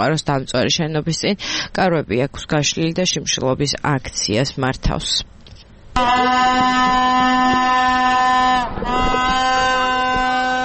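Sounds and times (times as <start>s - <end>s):
speech: 0.0s - 5.4s, 6.0s - 8.0s
protesters blowing a horn outside a government chancellery: 6.0s - 10.6s.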